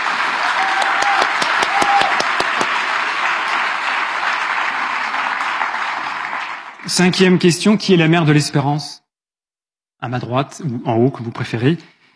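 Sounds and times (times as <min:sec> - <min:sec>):
audience applause: 0:00.0 - 0:07.4
speech: 0:07.0 - 0:09.0, 0:10.0 - 0:12.0.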